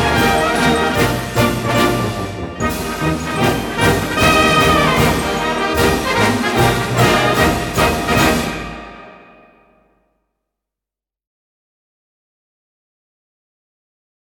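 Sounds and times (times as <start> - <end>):
military band march: 0.0 - 9.5.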